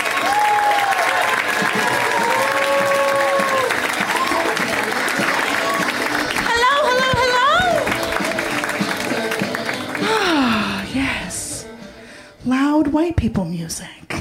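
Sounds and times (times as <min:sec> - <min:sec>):
audience applauding at a stand-up comedy show: 0:00.0 - 0:10.8
speech: 0:13.1 - 0:14.1.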